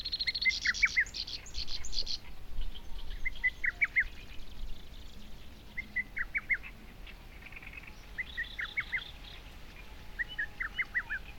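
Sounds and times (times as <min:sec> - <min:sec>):
bird song with short notes and a long buzzy trill: 0:00.0 - 0:11.3.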